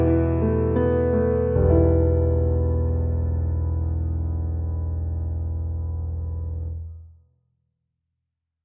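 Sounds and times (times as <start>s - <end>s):
calm nature song: 0.0s - 6.8s.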